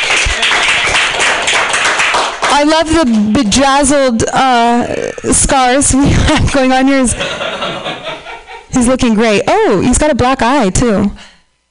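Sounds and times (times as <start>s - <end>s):
crowd clapping: 0.0s - 3.4s
speech: 2.6s - 8.0s, 8.8s - 11.2s
laughter: 6.1s - 8.8s.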